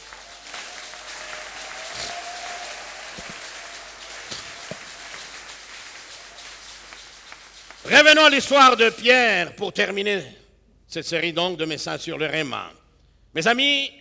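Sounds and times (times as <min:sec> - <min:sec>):
church congregation applauding: 0:00.0 - 0:09.3
speech: 0:07.9 - 0:13.9.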